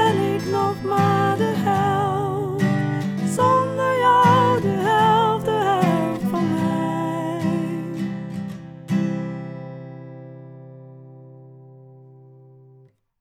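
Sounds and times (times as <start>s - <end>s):
high voice singing: 0.0s - 8.0s.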